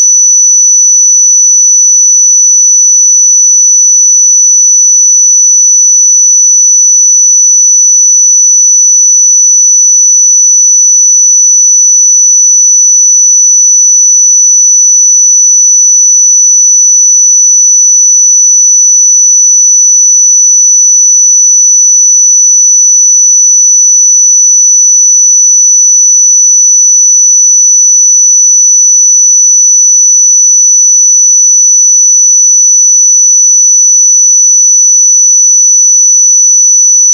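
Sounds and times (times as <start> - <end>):
pure sine tone at 5957 Hz: 0.0 - 37.1.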